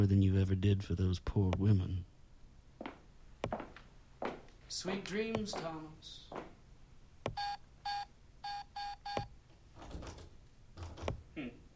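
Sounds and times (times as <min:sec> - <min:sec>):
speech: 0:00.0 - 0:02.1, 0:04.7 - 0:06.5, 0:11.4 - 0:11.6
electronic keypad beeps entering a code: 0:07.3 - 0:09.4.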